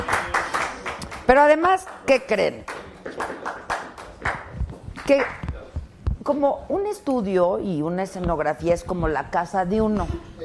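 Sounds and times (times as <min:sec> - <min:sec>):
scattered hand claps: 0:00.0 - 0:05.6
speech: 0:01.3 - 0:03.4, 0:05.1 - 0:05.4, 0:06.3 - 0:10.4.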